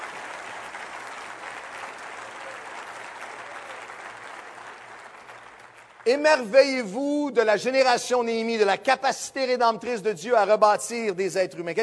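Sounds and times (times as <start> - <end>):
audience applauding: 0.0 - 6.7
speech: 6.0 - 11.8.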